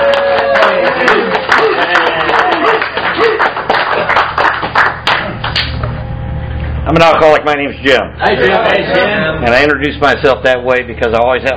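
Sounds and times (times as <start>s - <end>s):
audience applause: 0.0s - 5.7s
speech: 6.9s - 11.5s.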